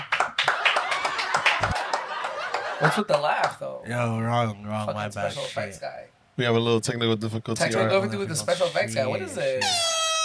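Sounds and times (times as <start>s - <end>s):
hands clapping: 0.0s - 2.7s
speech: 2.8s - 9.9s.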